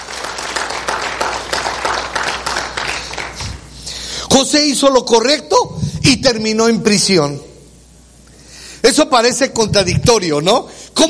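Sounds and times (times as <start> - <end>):
applause: 0.0 - 3.6
speech: 4.4 - 7.5, 8.9 - 11.0.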